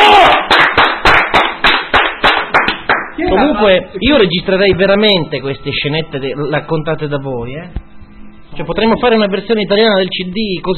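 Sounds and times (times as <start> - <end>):
rhythmic applause: 0.0 - 3.3
speech: 3.4 - 7.9, 8.5 - 10.7.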